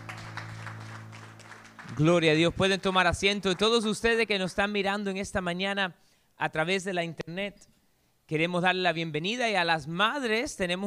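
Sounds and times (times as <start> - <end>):
audience applause: 0.0 - 4.0
speech: 1.9 - 7.7, 8.3 - 10.8.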